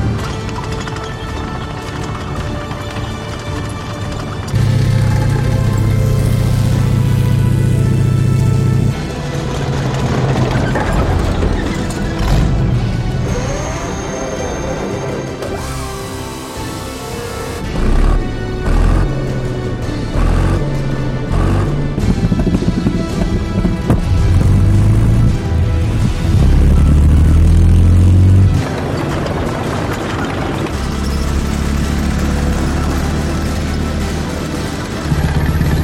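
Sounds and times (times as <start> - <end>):
World War 2 tanks: 0.0 - 35.8.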